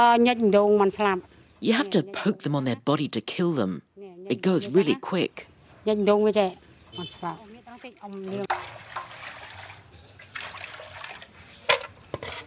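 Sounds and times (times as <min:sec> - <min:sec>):
speech: 0:00.0 - 0:09.1
water splashing as spiders are washed for cooking: 0:06.9 - 0:11.6.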